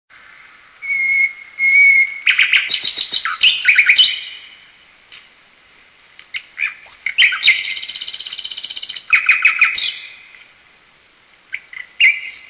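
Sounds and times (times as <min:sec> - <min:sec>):
nightingale song: 0:00.2 - 0:04.8, 0:06.3 - 0:10.4, 0:11.5 - 0:12.4.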